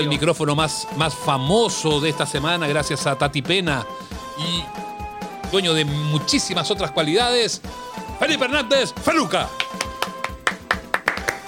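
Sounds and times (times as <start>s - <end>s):
speech: 0.0s - 4.9s, 5.5s - 9.8s
lukewarm applause: 9.4s - 11.4s.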